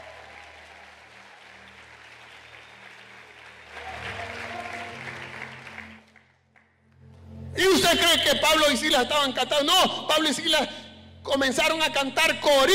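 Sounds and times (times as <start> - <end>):
audience applauding: 0.0 - 6.8
speech: 7.6 - 12.7.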